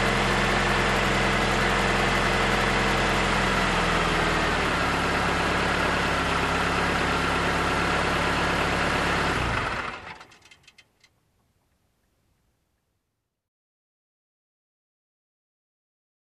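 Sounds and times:
car approaching and parking: 0:00.0 - 0:11.2.

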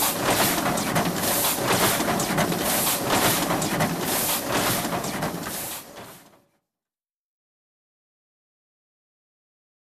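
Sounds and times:
commercial printer running: 0:00.0 - 0:06.3.

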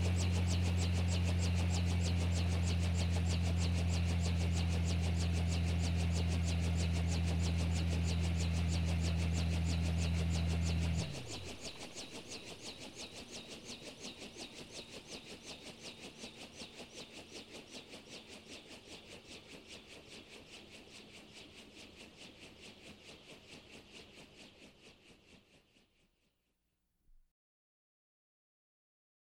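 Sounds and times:
helicopter landing on helipad: 0:00.0 - 0:16.8.

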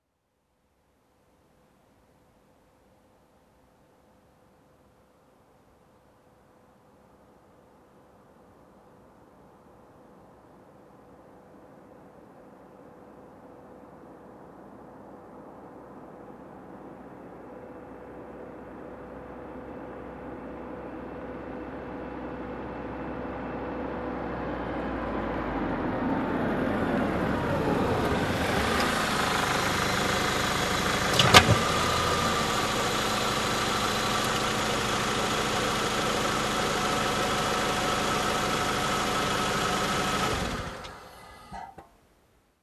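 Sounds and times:
car approaching and parking: 0:12.3 - 0:41.9.

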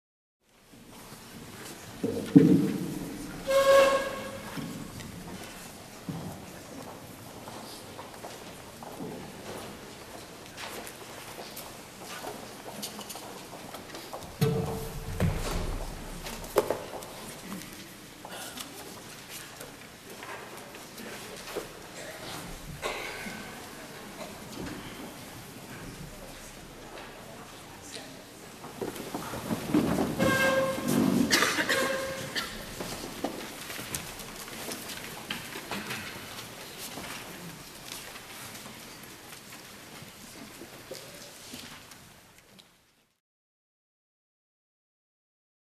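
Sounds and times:
people coming into a vacant pantry: 0:00.9 - 0:41.8.

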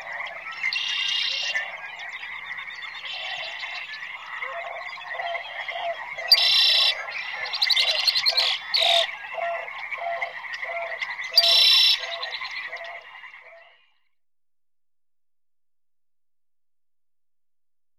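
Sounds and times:
frogs croaking in a dense chorus in nature: 0:00.0 - 0:14.0.

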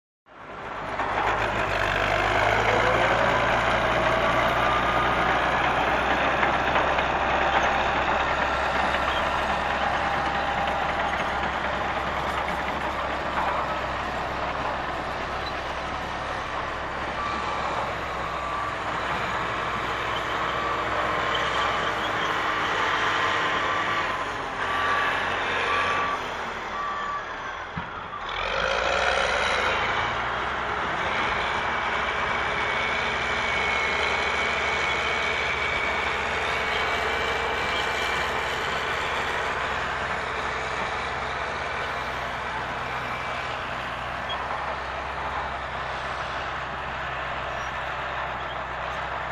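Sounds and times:
bulldozer unloading at a construction site: 0:00.5 - 0:49.3.

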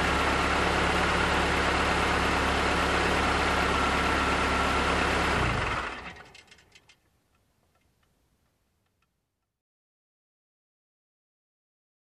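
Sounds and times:
car approaching and parking: 0:00.0 - 0:07.1.

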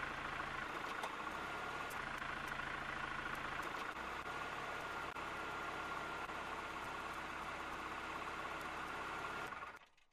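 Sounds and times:
vehicle driving around and stopping: 0:00.0 - 0:10.0
engine ignition: 0:00.7 - 0:01.3.

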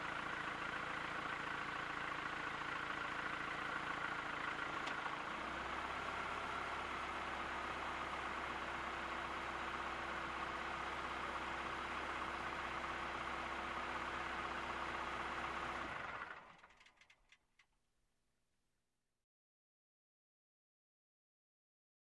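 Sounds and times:
car driving on dirt road with window open: 0:00.0 - 0:17.0.

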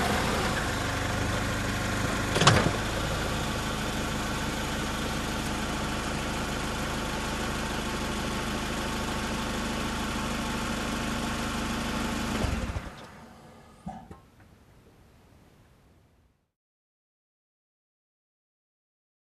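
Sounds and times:
car approaching and parking nearby: 0:00.0 - 0:14.6.

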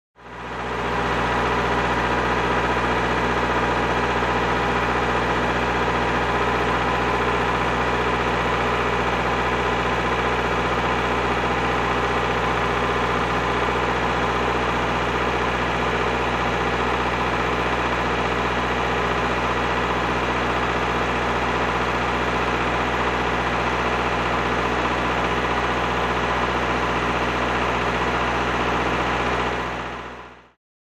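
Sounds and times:
grader idling at a construction site: 0:00.2 - 0:30.5.

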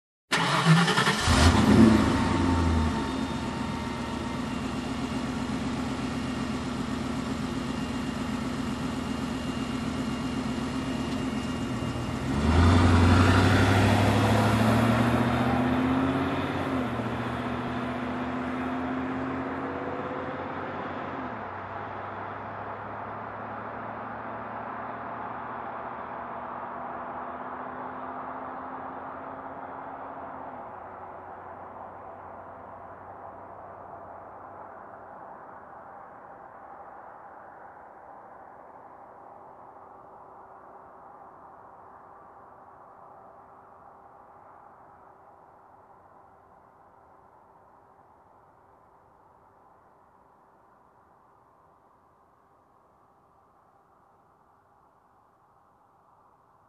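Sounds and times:
car engine ignition: 0:00.3 - 0:29.7
car driving away: 0:00.3 - 0:35.4.

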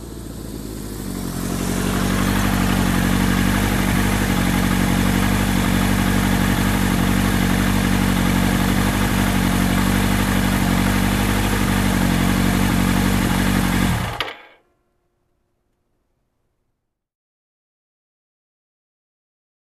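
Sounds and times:
motorcycle approaching: 0:00.0 - 0:14.6.

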